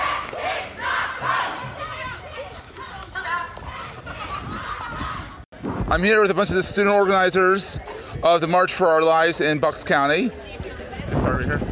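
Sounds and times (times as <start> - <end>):
rally crowd cheering: 0.0 - 5.4
speech: 5.9 - 10.5.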